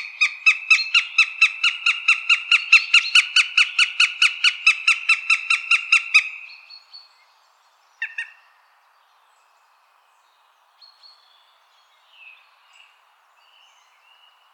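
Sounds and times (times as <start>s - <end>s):
Eurasian goshawk calling: 0.0s - 6.4s, 8.0s - 8.4s.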